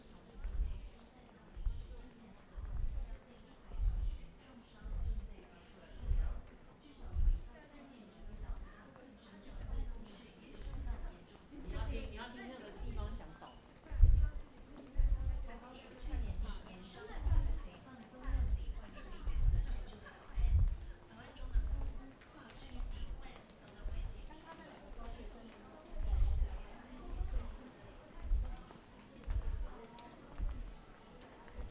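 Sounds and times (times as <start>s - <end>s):
underpass market ambience in Zhongshan Taipei: 0.0s - 31.6s.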